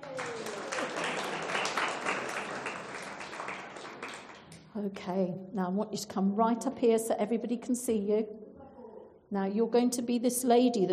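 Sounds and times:
murmur of voices: 0:00.0 - 0:03.2
crowd clapping: 0:00.0 - 0:04.7
speech: 0:04.8 - 0:08.4, 0:09.3 - 0:10.9.

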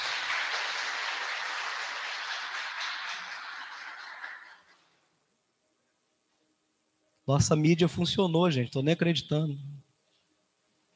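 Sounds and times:
audience applause: 0:00.0 - 0:04.8
speech: 0:07.3 - 0:09.8.

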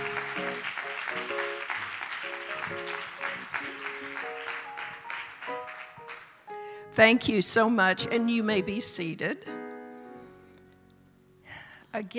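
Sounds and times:
round of applause: 0:00.0 - 0:06.4
speech: 0:07.0 - 0:09.6, 0:12.0 - 0:12.1.

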